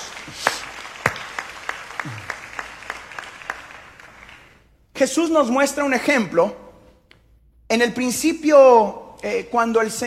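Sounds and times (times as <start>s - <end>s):
audience applauding: 0.0s - 4.7s
speech: 0.2s - 0.5s, 2.0s - 2.3s, 5.0s - 6.6s, 7.7s - 10.0s.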